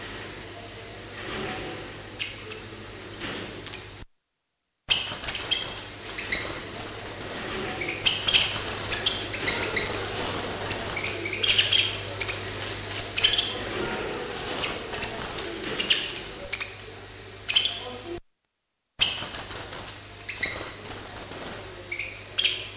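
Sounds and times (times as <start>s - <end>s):
birds: 2.0s - 4.0s, 4.9s - 18.2s, 19.0s - 22.7s.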